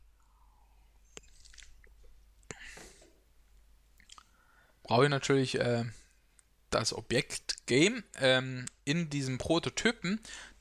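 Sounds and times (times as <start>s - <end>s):
mouth clicks: 4.0s - 4.3s
speech: 4.9s - 6.0s, 6.7s - 10.5s.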